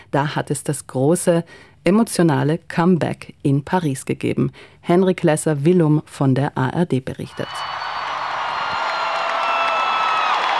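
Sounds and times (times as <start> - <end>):
speech: 0.1 - 7.9
large concert crowd cheering: 7.3 - 10.5
whistles: 7.3 - 10.5.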